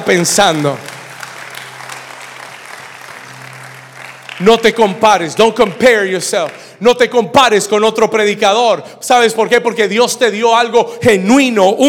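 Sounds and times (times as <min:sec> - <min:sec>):
speech: 0:00.0 - 0:00.9, 0:04.4 - 0:11.8
audience applause: 0:00.0 - 0:06.7.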